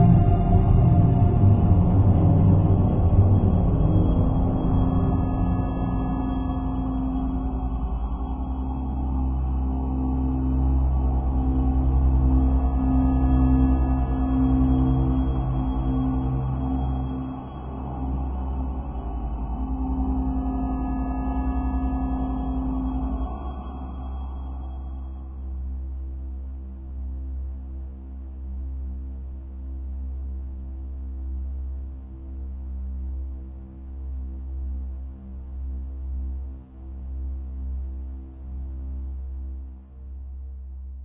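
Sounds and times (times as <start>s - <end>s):
space ambience: 0.0s - 25.8s.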